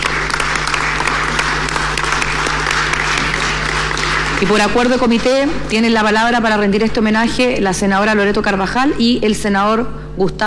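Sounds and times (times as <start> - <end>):
applause in the senate gallery: 0.0 - 5.6
speech: 4.4 - 10.4.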